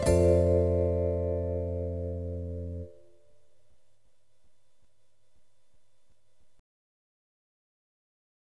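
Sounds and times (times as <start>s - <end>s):
bossa nova music: 0.0s - 3.1s.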